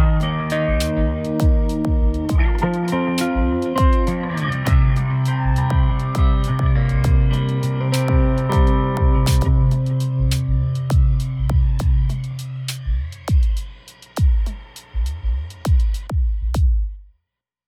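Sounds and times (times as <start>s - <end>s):
guitar riff without delay: 0.0s - 12.6s
drums: 0.0s - 17.1s.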